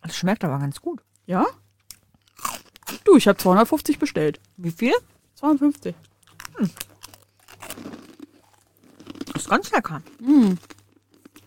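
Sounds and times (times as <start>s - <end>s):
speech: 0.2s - 1.6s, 3.1s - 6.9s, 9.5s - 10.8s
crunchy chewing of a snack into a microphone: 1.8s - 3.1s, 6.0s - 11.4s.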